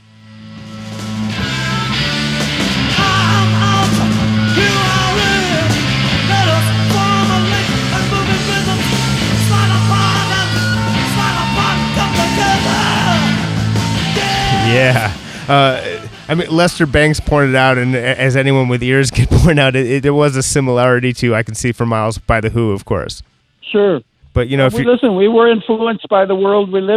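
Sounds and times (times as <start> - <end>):
live rock song played from album: 0.4 - 16.3
speech: 15.5 - 26.9.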